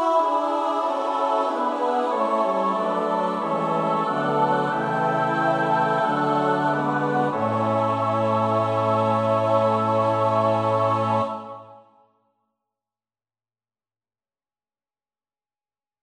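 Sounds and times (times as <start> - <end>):
SATB choir part practice: 0.0 - 12.0.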